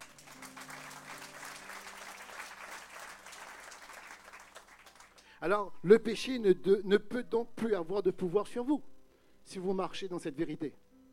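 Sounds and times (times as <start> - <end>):
church congregation applauding: 0.0 - 5.4
speech: 5.4 - 8.9, 9.5 - 10.8.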